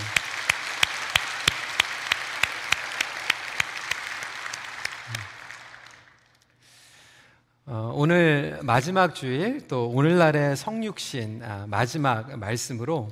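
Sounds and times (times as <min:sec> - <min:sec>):
audience applause: 0:00.0 - 0:06.4
speech: 0:08.0 - 0:13.0.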